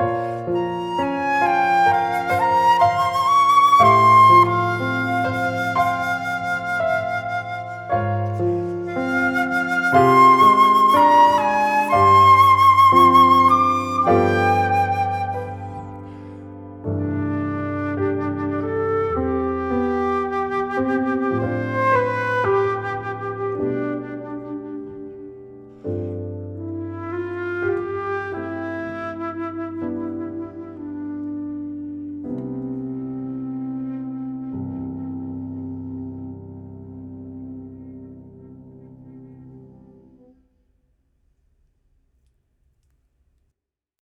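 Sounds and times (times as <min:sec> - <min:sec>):
flute: 0:00.0 - 0:38.4
piano: 0:00.0 - 0:40.7.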